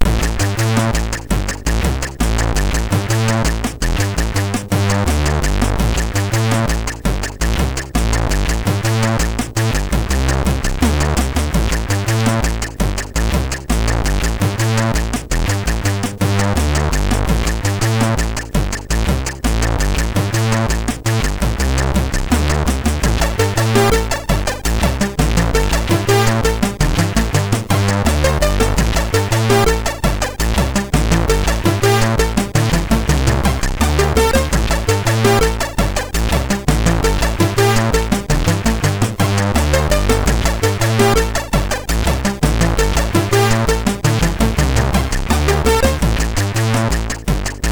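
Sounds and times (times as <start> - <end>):
MOS6581R3 chip loader music: 0.0 - 47.6.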